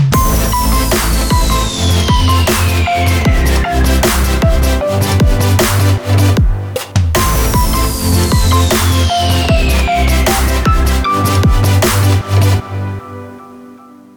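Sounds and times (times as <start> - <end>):
future bass music: 0.2 - 13.4.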